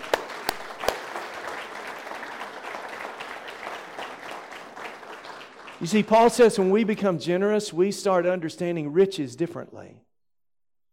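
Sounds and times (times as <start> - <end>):
crowd applause: 0.0 - 6.6
speech: 5.8 - 10.1.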